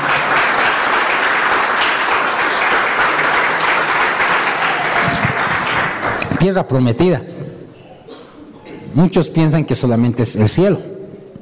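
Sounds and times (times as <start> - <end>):
audience applause: 0.0 - 6.6
speech: 6.4 - 7.3, 9.0 - 10.9.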